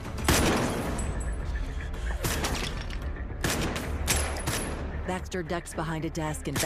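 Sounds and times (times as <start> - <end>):
gun magazine being emptied: 0.2 - 1.1, 2.2 - 4.8
speech: 5.1 - 6.6.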